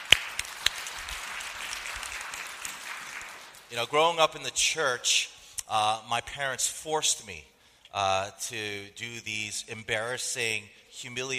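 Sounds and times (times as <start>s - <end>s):
audience clapping: 0.0s - 4.3s
speech: 3.7s - 11.3s.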